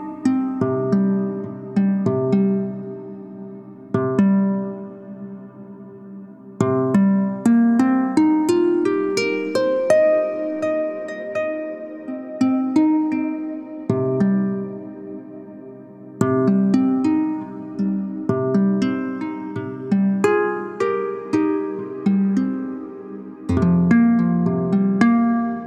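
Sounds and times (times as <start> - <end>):
harp: 0.0 - 25.6.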